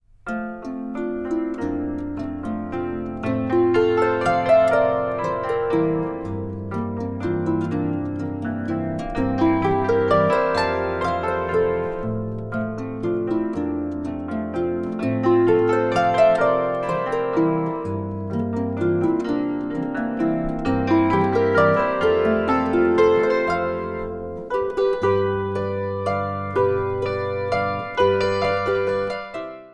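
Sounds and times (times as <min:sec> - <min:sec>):
harp playing a Ländler: 0:00.2 - 0:29.7.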